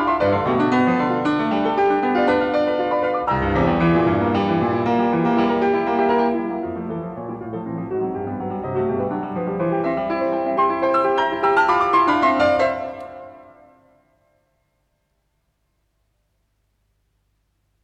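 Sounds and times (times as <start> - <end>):
waltz in C major played presto: 0.0 - 13.0.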